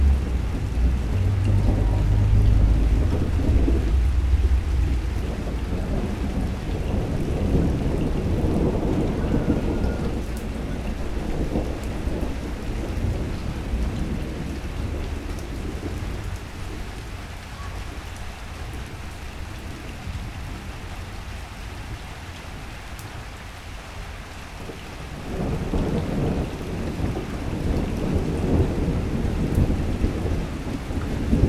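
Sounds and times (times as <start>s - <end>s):
thunder in Vedia Buenas Aires Province Argentina: 0.0s - 17.0s, 24.6s - 31.4s
rain in Vedia Buenas Aires Province Argentina: 0.0s - 31.4s.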